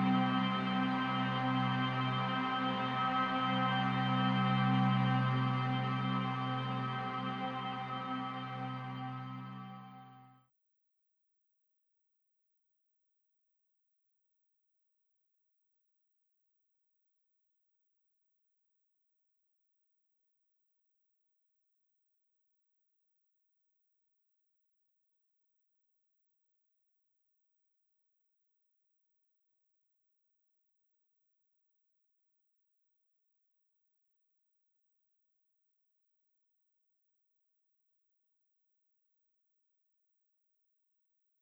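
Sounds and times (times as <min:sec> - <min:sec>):
C notes in octaves: 0:00.0 - 0:10.2.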